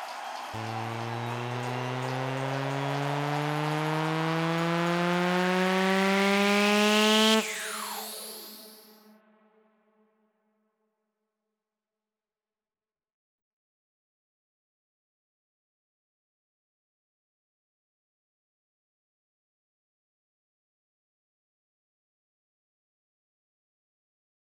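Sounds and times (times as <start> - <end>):
140 BPM sound effect: 0.6 - 9.0.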